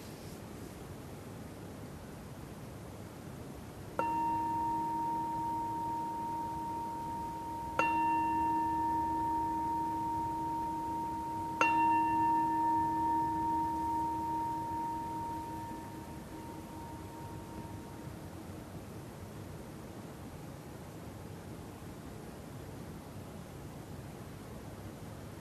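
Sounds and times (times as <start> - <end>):
meditation bell ringing: 4.0 - 18.3.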